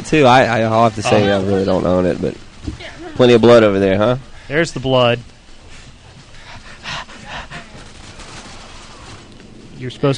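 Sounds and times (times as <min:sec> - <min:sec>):
speech: 0:00.1 - 0:05.3, 0:09.8 - 0:10.1
gunfire in a video game shooter: 0:07.5 - 0:10.1.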